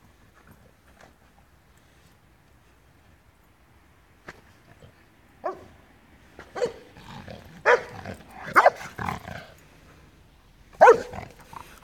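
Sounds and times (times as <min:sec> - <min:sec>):
dog barking and yipping: 0:05.4 - 0:05.7, 0:06.4 - 0:07.0, 0:07.6 - 0:09.0, 0:10.8 - 0:11.4.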